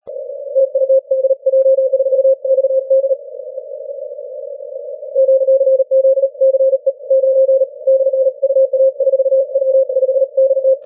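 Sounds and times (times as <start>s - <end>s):
40m band CW Morse code tones: 0.5s - 3.2s, 5.2s - 10.8s.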